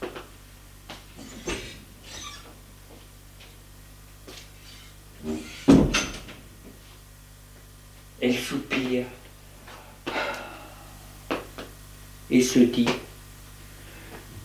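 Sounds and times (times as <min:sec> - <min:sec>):
faint steady hum: 0:00.0 - 0:14.4
bedroom door creaking open: 0:01.2 - 0:02.6
speech: 0:08.2 - 0:09.2, 0:12.3 - 0:13.1.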